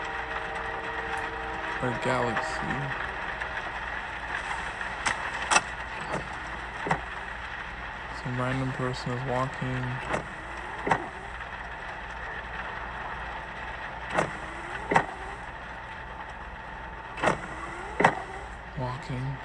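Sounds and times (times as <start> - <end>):
car windshield wipers swishing: 0.0 - 7.4, 8.3 - 12.1, 14.1 - 15.4, 17.1 - 18.6
steady low hum: 0.0 - 19.4
speech: 1.8 - 3.1, 8.2 - 10.2, 10.8 - 11.0.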